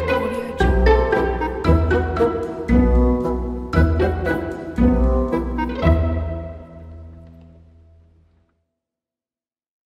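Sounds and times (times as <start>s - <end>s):
funny background music: 0.0s - 7.2s.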